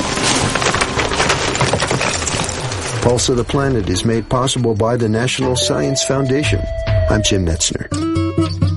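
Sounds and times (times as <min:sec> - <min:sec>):
ewes' hooves clattering on rocks near river: 0:00.0 - 0:04.1
speech: 0:03.1 - 0:08.6.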